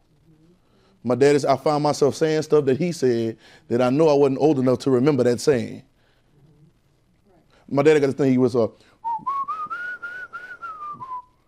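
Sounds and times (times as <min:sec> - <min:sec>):
speech: 0:01.0 - 0:05.9, 0:07.7 - 0:09.3
man whistling a tune: 0:09.0 - 0:11.4.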